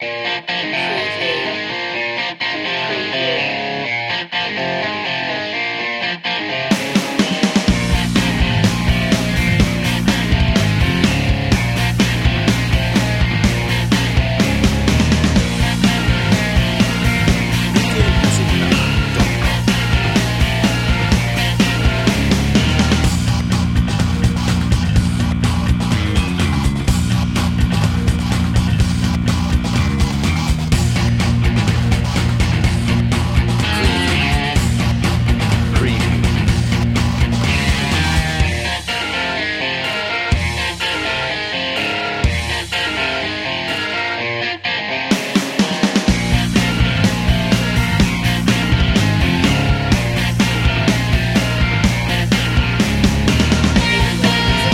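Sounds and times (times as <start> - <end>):
rock house music: 0.0 - 54.7
laughter: 15.4 - 22.1.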